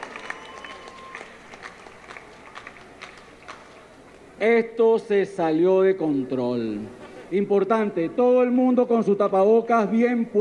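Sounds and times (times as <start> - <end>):
audience applause: 0.0 - 3.9
speech: 4.4 - 10.3.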